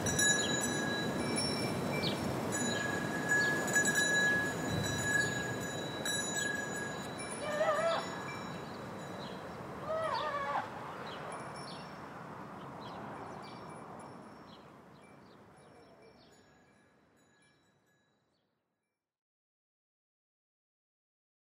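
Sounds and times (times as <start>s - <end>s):
cowbells at Borgo Filaga: 0.0s - 10.3s, 11.1s - 12.1s, 12.8s - 18.4s.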